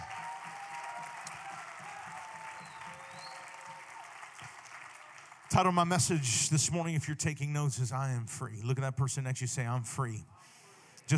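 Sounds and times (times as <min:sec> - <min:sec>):
audience applause for pastors: 0:00.0 - 0:06.2
speech: 0:05.5 - 0:10.4.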